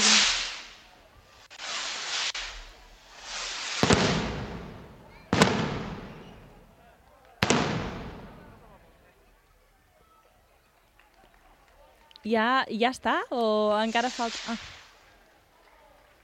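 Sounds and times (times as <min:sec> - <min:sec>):
fireworks rockets being set off, sharp cracks: 0:00.0 - 0:09.0, 0:13.7 - 0:16.2
speech: 0:12.2 - 0:14.7.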